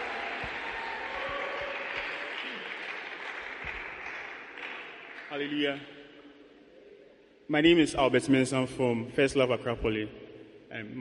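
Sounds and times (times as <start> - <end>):
worship gathering applause welcoming a speaker: 0.0 - 5.6
speech: 5.3 - 6.0, 7.5 - 10.9.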